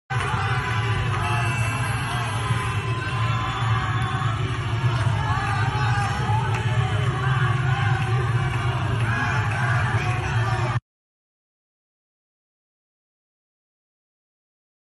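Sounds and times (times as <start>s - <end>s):
street crowd clapping: 0.1s - 10.8s.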